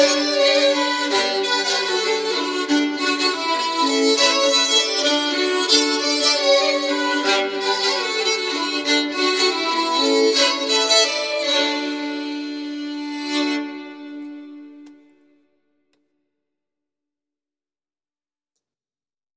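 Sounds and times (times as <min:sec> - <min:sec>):
bagpipe playing a polska: 0:00.0 - 0:15.2
fiddle playing a polska: 0:00.0 - 0:15.3.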